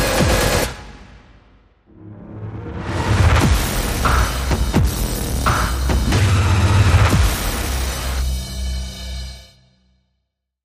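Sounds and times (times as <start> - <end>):
agitated music without guitars: 3.2 - 8.7.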